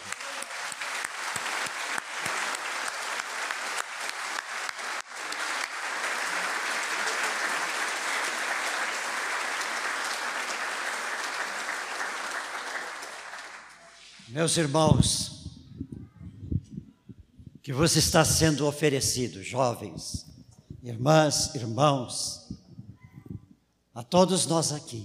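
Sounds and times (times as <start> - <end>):
audience clapping: 0.0 - 14.2
speech: 14.3 - 15.3, 17.7 - 22.4, 24.0 - 25.0.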